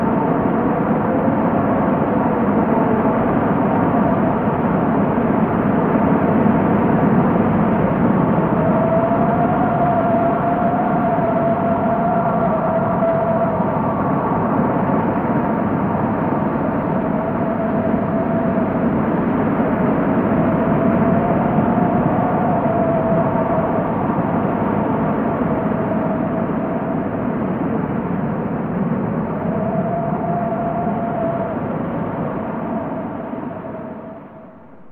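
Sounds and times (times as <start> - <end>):
overdriven wind: 0.0 - 34.9.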